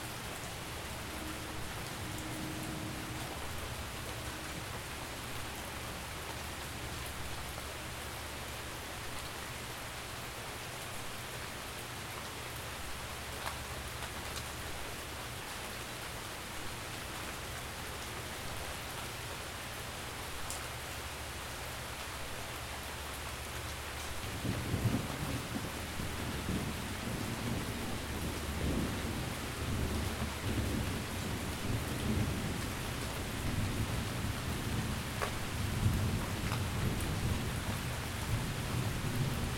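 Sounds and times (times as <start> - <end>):
rain: 0.0 - 39.5
thunderstorm: 24.3 - 39.5.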